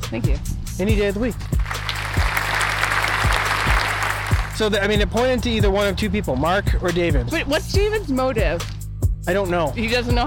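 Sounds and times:
speech: 0:00.1 - 0:01.6, 0:04.6 - 0:10.2
small group applauding: 0:01.6 - 0:04.7.

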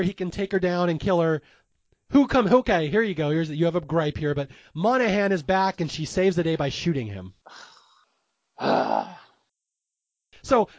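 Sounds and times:
speech: 0:00.0 - 0:07.7, 0:08.6 - 0:09.2, 0:10.4 - 0:10.7
man groaning: 0:08.6 - 0:09.4.

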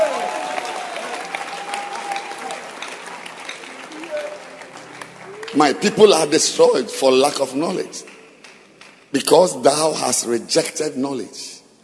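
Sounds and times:
audience clapping: 0:00.0 - 0:09.4
speech: 0:05.5 - 0:08.2, 0:09.1 - 0:11.5.

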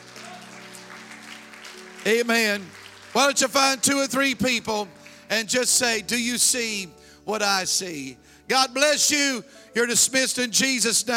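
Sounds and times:
audience clapping hands: 0:00.0 - 0:05.4
speech: 0:02.0 - 0:11.1.

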